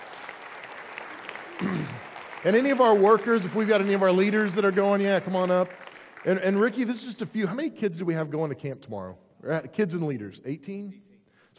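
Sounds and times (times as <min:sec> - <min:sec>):
crowd applauding with many hands clapping: 0:00.0 - 0:07.5
speech: 0:01.6 - 0:11.1.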